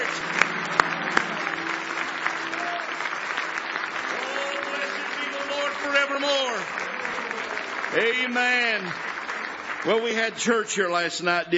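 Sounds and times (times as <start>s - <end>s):
audience hand clapping: 0.0s - 11.5s
speech: 8.0s - 9.1s, 9.8s - 11.5s.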